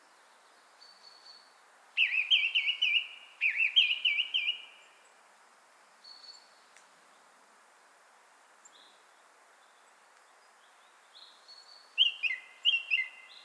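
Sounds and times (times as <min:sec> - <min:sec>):
Song thrush Turdus philomelos singing whistled double notes: 0:00.8 - 0:04.9, 0:10.6 - 0:13.4.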